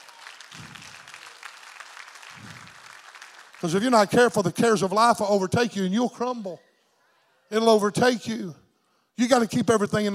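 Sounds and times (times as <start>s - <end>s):
crowd clapping: 0.0s - 4.5s
speech: 3.6s - 6.7s, 7.5s - 8.6s, 9.2s - 10.1s.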